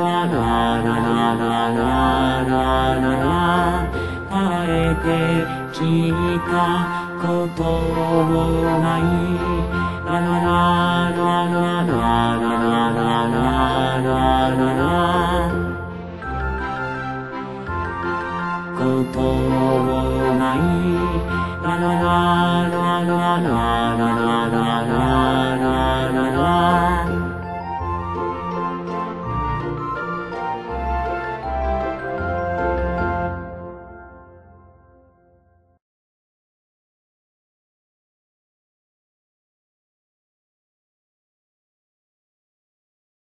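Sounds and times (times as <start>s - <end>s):
bass: 0.0s - 34.1s.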